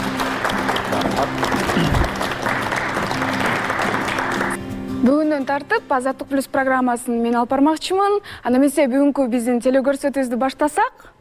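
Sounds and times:
television studio audience applause seeing off a departing presenter: 0.0s - 4.6s
speech: 5.6s - 11.1s.

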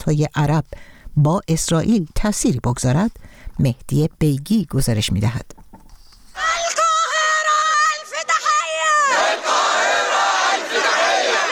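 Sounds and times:
speech: 0.0s - 5.6s
large protest crowd chanting and shouting: 6.4s - 11.4s.

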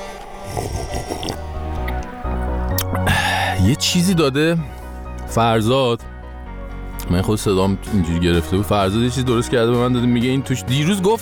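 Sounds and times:
person sipping a drink: 0.0s - 3.4s
speech: 3.6s - 6.1s, 7.1s - 11.2s.

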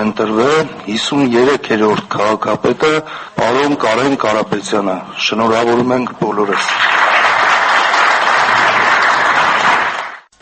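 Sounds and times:
speech: 0.0s - 7.0s
standing ovation for Yerevan's newly elected mayor after the city council vote: 6.4s - 10.3s.

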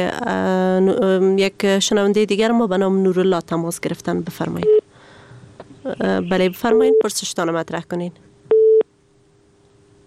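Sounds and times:
speech: 0.0s - 4.8s, 5.8s - 8.3s
busy signal beep after a dropped phone line: 8.5s - 8.8s.

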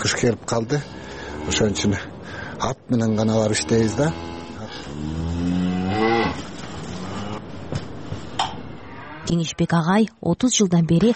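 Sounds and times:
speech: 0.2s - 4.3s, 4.9s - 5.3s, 9.3s - 11.1s
cattle mooing at a rural home: 0.8s - 2.0s, 3.1s - 7.5s, 8.7s - 9.3s.

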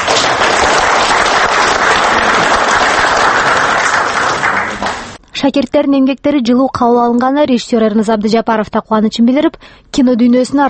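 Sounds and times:
audience clapping for young filmmakers at a screening: 0.0s - 5.2s
speech: 5.4s - 10.6s.

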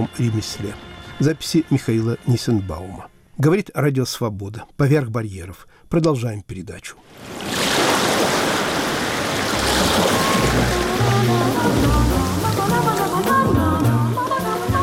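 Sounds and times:
speech: 0.0s - 7.5s
lake water sloshing and lapping in Lithuania: 7.0s - 14.8s.

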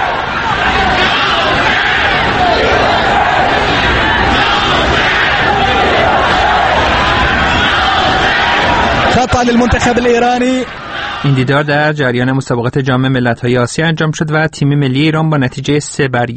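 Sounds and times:
football stadium crowd chanting slogans: 0.0s - 11.4s
speech: 9.4s - 16.3s.

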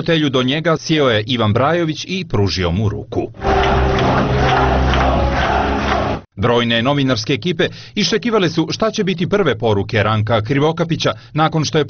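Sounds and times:
speech: 0.0s - 5.0s, 6.4s - 11.8s
applause and chanting of delegates at a Social Democrats party congress: 3.4s - 6.3s.

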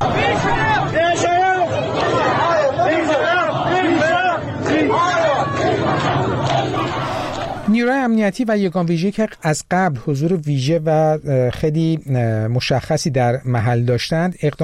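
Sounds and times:
protest crowd chanting slogans in front of a governor's office: 0.0s - 7.7s
speech: 8.0s - 14.6s.

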